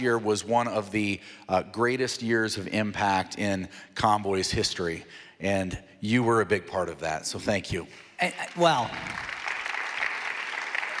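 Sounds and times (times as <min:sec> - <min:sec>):
speech: 0:00.0 - 0:09.4
audience clapping: 0:07.9 - 0:10.9.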